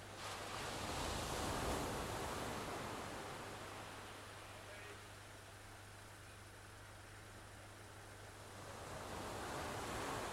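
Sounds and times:
waves on the beach at Aberystwyth in Wales: 0.1s - 4.3s, 8.5s - 10.3s.

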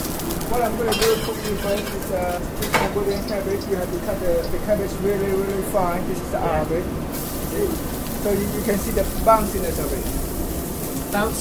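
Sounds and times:
oil sizzling in a heated wok in a busy restaurant kitchen: 0.0s - 11.3s
speech: 0.5s - 10.2s, 11.1s - 11.3s
light metallic clatter: 0.9s - 3.4s.

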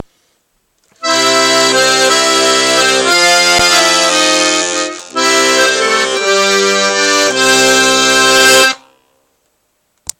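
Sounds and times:
new accordion playing an intro: 1.0s - 9.2s.

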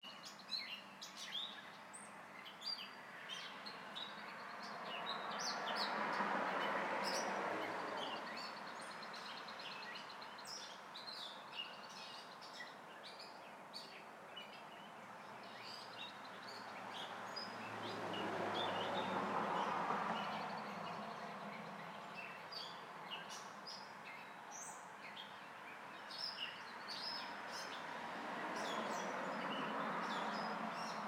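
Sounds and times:
birds: 0.0s - 31.0s
cars: 3.4s - 10.2s, 15.0s - 24.0s, 26.8s - 31.0s.

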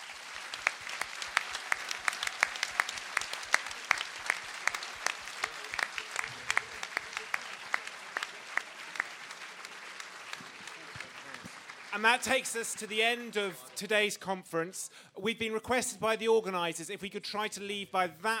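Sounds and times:
audience applauding panellists: 0.0s - 14.0s
speech: 12.0s - 18.3s.

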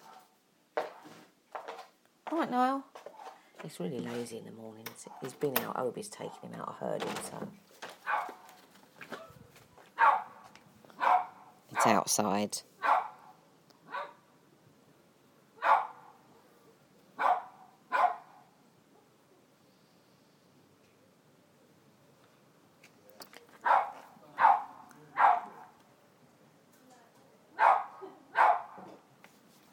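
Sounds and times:
speech: 2.3s - 3.0s, 3.6s - 7.7s, 11.8s - 12.7s
dog barking outside: 8.0s - 8.5s, 10.0s - 12.0s, 12.8s - 14.2s, 15.6s - 16.3s, 17.2s - 19.1s, 23.6s - 25.8s, 27.6s - 28.9s.

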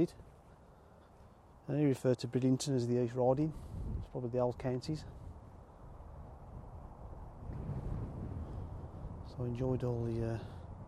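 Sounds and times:
speech: 0.0s - 0.3s, 1.7s - 5.2s, 9.3s - 10.6s
strong seaside wind at Bridlington buffeting the microphone: 3.5s - 4.2s, 5.0s - 10.8s.

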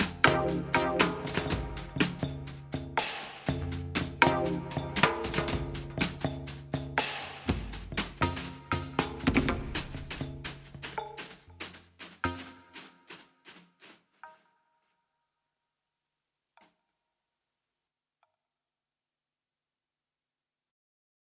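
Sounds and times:
wavedrum electronic drums in four tracks: 0.0s - 13.6s.

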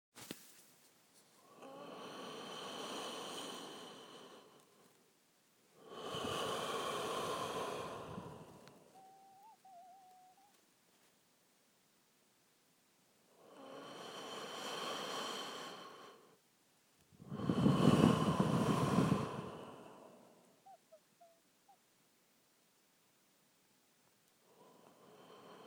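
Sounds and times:
weird breathing: 1.4s - 5.0s, 5.8s - 10.5s, 13.4s - 16.4s, 17.2s - 21.4s, 24.4s - 25.6s.

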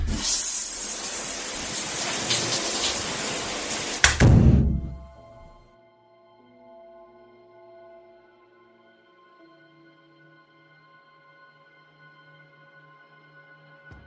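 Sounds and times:
shower water running: 0.1s - 5.0s.

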